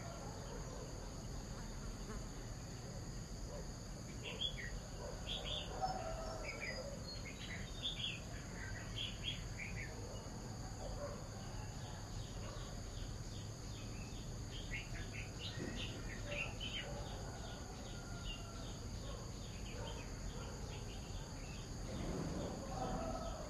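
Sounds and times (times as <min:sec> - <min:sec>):
morning ambience in Vietnam: 0:00.0 - 0:23.4.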